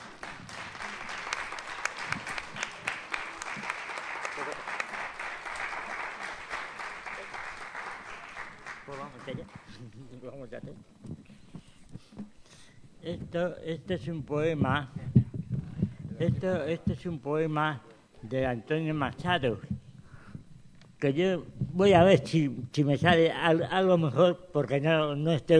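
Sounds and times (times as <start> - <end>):
audience applause: 0.0 - 9.8
speech: 9.4 - 11.0, 13.0 - 15.0, 16.2 - 19.7, 21.0 - 25.5.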